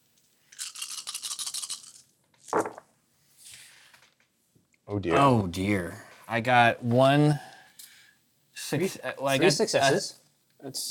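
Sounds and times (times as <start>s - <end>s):
eight dice rattling and clattering: 0.5s - 2.8s
speech: 4.9s - 7.5s, 8.7s - 10.8s.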